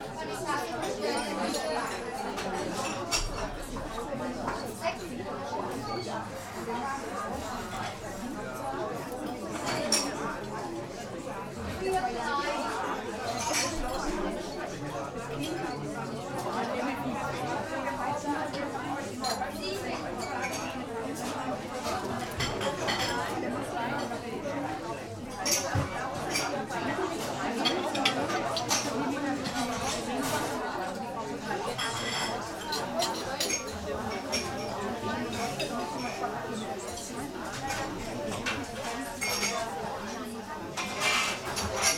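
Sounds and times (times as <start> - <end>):
German coffee shop atmosphere: 0.0 - 41.9.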